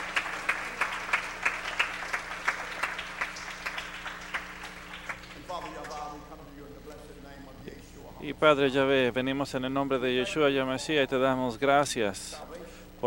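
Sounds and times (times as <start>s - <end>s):
rhythmic audience clapping: 0.0s - 6.6s
speech: 8.3s - 12.5s.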